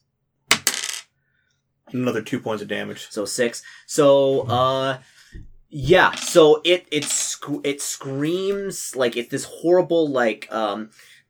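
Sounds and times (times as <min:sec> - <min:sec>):
small four-sided die clattering onto a hard surface: 0:00.5 - 0:01.0, 0:05.8 - 0:07.3
speech: 0:01.9 - 0:11.1.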